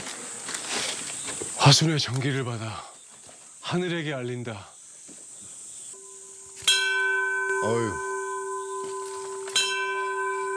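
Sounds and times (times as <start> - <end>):
speech: 1.7 - 2.9, 3.7 - 4.7, 7.6 - 8.1
large bell being struck: 6.0 - 10.5.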